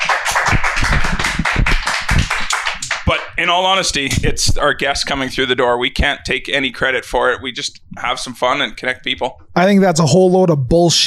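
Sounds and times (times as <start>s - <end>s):
audience applause: 0.0s - 3.2s
speech: 3.1s - 11.0s.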